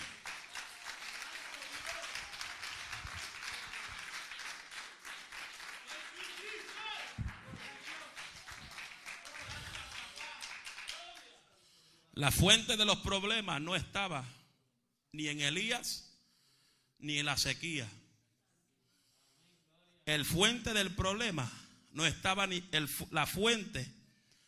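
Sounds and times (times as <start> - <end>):
voices cheering: 0.0 - 4.2, 5.7 - 11.3
audience applause: 0.0 - 11.4
speech: 12.2 - 14.4, 15.1 - 16.1, 17.0 - 18.0, 20.1 - 24.0.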